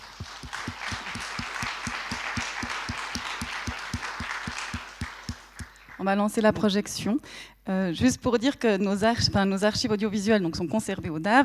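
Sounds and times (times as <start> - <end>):
audience applause: 0.0 - 6.0
speech: 6.0 - 11.4.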